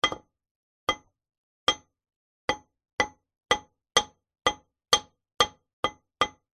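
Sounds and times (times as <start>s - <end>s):
industrial hammer lightly hitting concrete: 0.0s - 0.3s, 1.7s - 1.9s, 2.5s - 6.5s.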